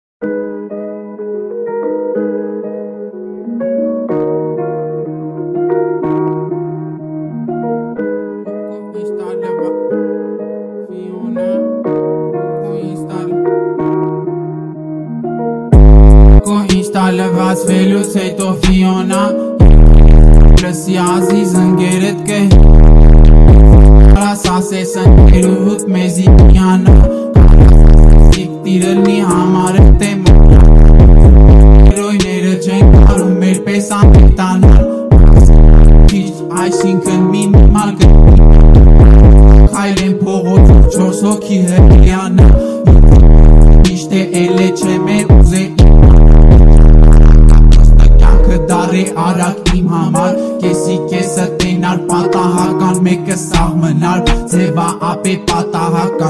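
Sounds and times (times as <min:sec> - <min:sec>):
boosted bass: 0:15.7 - 0:55.6.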